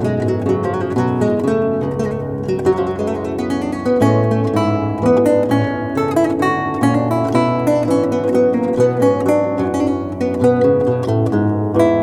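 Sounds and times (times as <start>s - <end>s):
baroque lute piece in E minor: 0.0s - 12.0s.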